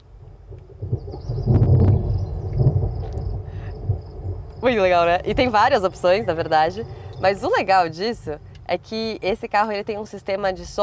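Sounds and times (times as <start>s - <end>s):
summer rain soundscape: 0.0s - 9.3s
deep rumble: 0.0s - 9.9s
faint high chirping tones: 1.0s - 8.6s
speech: 4.6s - 10.8s.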